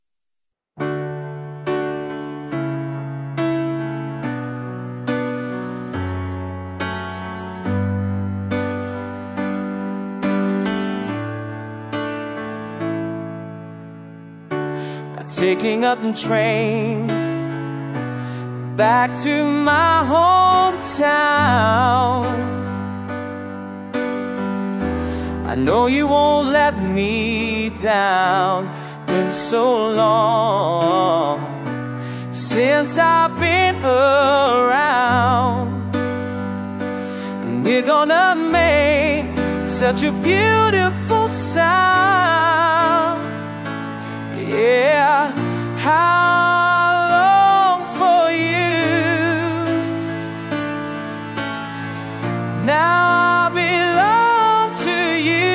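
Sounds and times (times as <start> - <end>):
piano music: 0.8 - 55.5.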